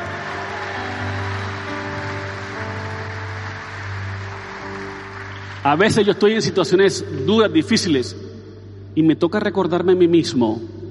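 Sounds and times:
loud audience applause: 0.0 - 6.1
speech: 5.6 - 8.3, 9.0 - 10.8.

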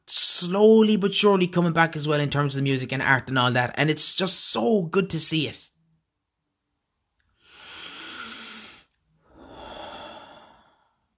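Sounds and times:
speech: 0.4 - 5.7
deep breath taken to calm down: 7.4 - 11.1.

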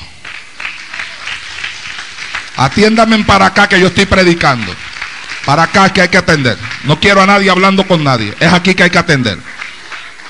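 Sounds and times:
audience applause: 0.0 - 10.2
speech: 2.6 - 4.9, 5.5 - 9.5.

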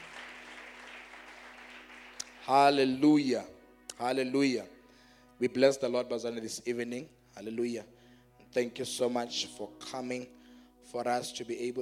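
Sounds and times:
audience clapping hands: 0.0 - 2.9
speech: 2.5 - 4.8, 5.4 - 11.8.

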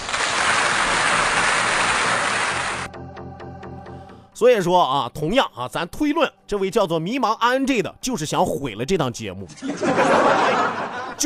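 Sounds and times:
audience applause: 0.0 - 2.9
speech: 4.4 - 11.2
laughter: 9.5 - 11.2.

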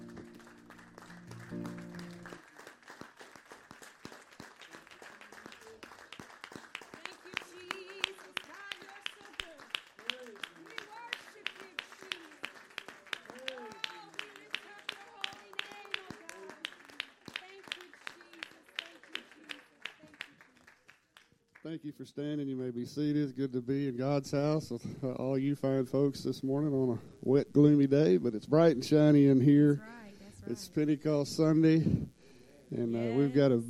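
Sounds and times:
congregation clapping in rhythm during a Pentecost Sunday church service: 0.0 - 21.8
speech: 21.7 - 32.1, 32.7 - 33.6.

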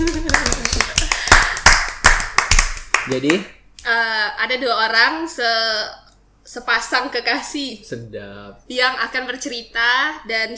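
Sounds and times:
audience clapping hands: 0.0 - 3.6
speech: 3.1 - 10.5.

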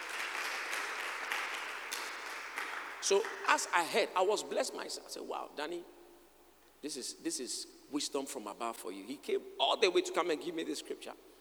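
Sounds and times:
audience clapping hands: 0.0 - 3.9
speech: 3.0 - 6.0, 6.8 - 11.3.

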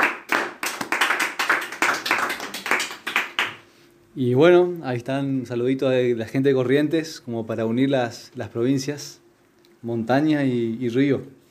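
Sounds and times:
small group clapping: 0.0 - 3.6
speech: 4.2 - 9.2, 9.8 - 11.4.

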